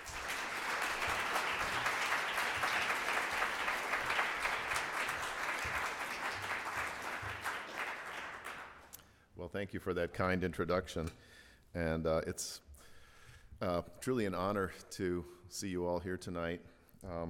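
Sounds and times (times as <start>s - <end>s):
audience applauding a philosophy professor's introduction: 0.0s - 9.0s
speech: 9.5s - 12.6s, 13.6s - 17.2s.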